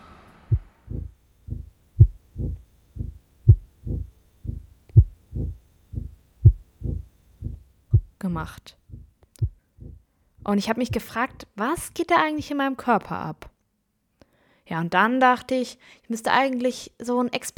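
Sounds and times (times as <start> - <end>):
pounding heartbeat: 0.5 - 8.2, 8.8 - 11.1
speech: 8.4 - 8.8, 10.5 - 13.5, 14.7 - 17.5.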